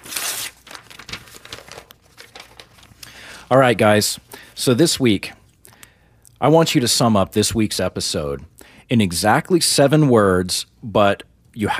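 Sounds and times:
paper envelope tearing open: 0.0 - 3.0
paper rustling: 0.0 - 3.1
speech: 3.5 - 5.4, 6.4 - 11.7.

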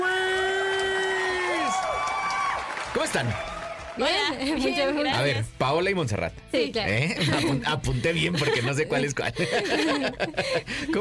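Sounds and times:
audience cheering with high whoops and yells: 0.0 - 4.4
steady audience clapping: 1.6 - 4.6
speech: 3.0 - 11.0
laughter: 7.1 - 11.0.

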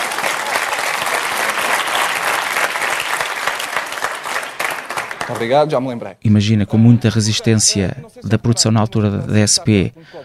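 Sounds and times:
audience clapping: 0.0 - 5.9
speech: 5.3 - 10.2.

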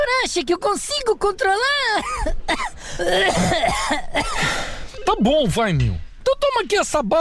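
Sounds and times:
speech: 0.3 - 7.1
person coughing: 2.0 - 4.7.

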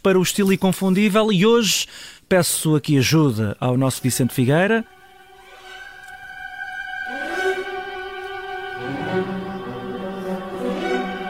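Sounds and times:
speech: 0.0 - 5.0
orchestral classical music playing: 4.1 - 11.2.

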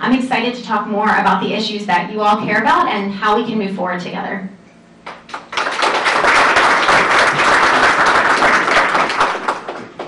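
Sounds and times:
speech: 0.1 - 4.6
crowd applause: 5.1 - 10.0.

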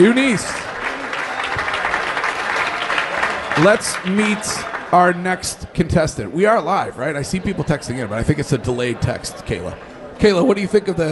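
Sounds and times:
speech: 0.0 - 0.7, 3.6 - 11.1
audience applause for a contestant on a live show: 0.0 - 5.2.

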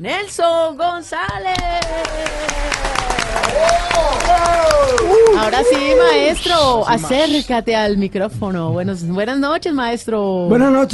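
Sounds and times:
speech: 0.0 - 10.9
audience applause and cheering: 1.5 - 6.9.

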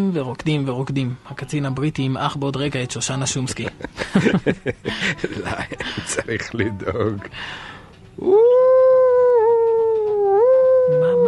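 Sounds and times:
speech: 0.0 - 8.7
laughter: 3.6 - 7.1
long howl: 8.2 - 11.2.

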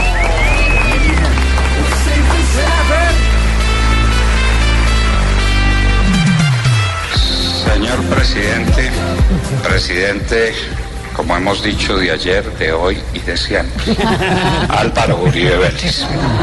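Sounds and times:
loud audience applause: 0.0 - 12.2
speech: 10.0 - 16.4
laughter: 13.7 - 16.4.

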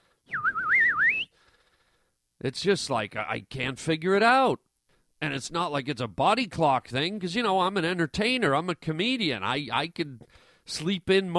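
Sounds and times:
person whistling an imitation of birds chirping: 0.2 - 1.4
speech: 2.4 - 11.3.

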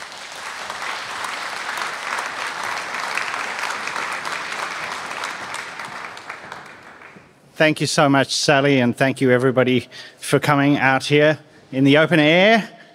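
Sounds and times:
audience applause welcoming a speaker at an open-air talk: 0.0 - 7.4
speech: 7.6 - 12.8.

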